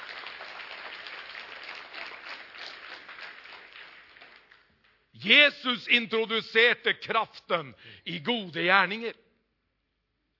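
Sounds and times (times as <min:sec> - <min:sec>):
audience applauding: 0:00.0 - 0:04.7
speech: 0:05.2 - 0:09.2.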